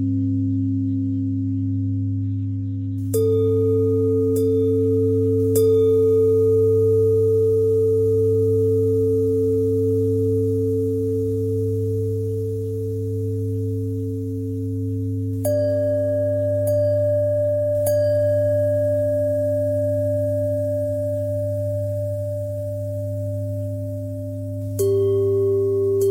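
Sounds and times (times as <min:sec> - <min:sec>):
bell bend threads: 0:00.0 - 0:26.0.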